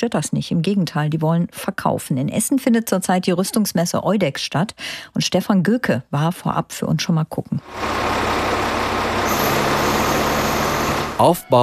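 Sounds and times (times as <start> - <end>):
speech: 0.0 - 8.8, 11.2 - 11.6
camouflage military truck driving into exhibition hall: 7.6 - 11.6.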